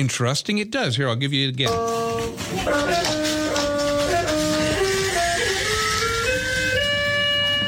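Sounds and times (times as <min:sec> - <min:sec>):
speech: 0:00.0 - 0:03.4
kid's floor piano keyboard notes as a dog rubs its backside across the keys: 0:01.6 - 0:07.6.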